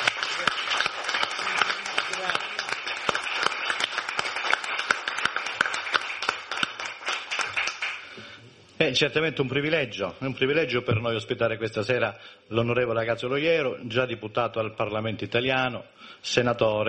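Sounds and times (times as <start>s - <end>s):
audience warm applause: 0.0s - 8.2s
speech: 8.8s - 16.8s.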